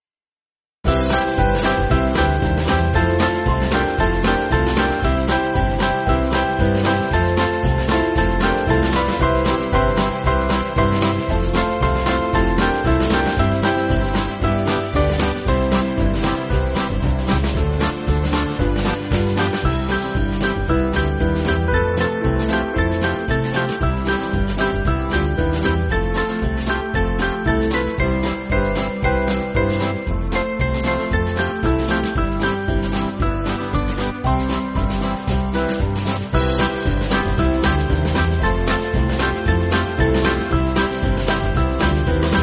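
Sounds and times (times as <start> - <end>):
band playing: 0.9 - 42.4.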